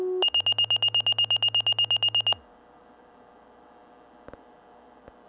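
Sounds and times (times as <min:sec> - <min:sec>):
Minitor V pager alert tone: 0:00.2 - 0:02.4.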